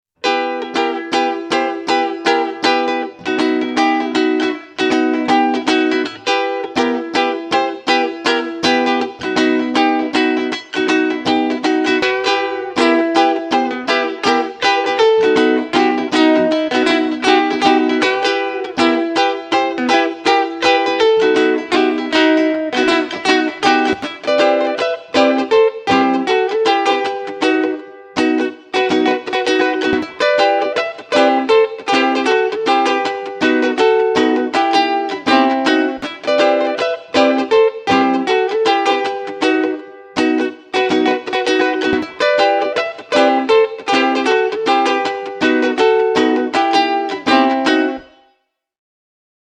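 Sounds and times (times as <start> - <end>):
guitar: 0.1 - 48.5.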